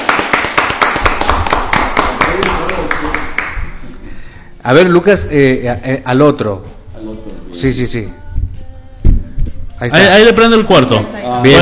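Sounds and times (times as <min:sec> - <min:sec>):
crowd applause: 0:00.0 - 0:03.6
speech: 0:04.7 - 0:08.2, 0:09.8 - 0:11.5.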